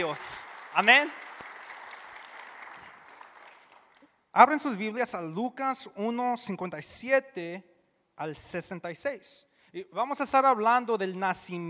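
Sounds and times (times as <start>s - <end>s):
speech: 0.0s - 1.2s, 4.4s - 11.6s
audience applause: 0.0s - 4.1s.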